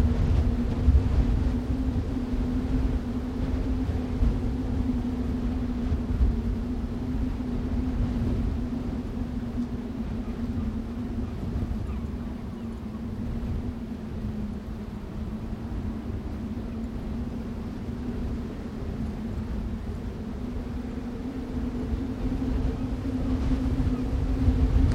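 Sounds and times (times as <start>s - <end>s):
wind in a snowstorm: 0.0s - 24.9s.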